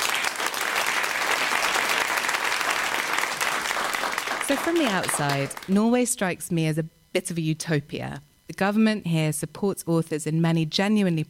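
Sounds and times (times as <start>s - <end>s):
audience applause welcoming a panel of authors: 0.0s - 5.7s
speech: 4.5s - 11.2s.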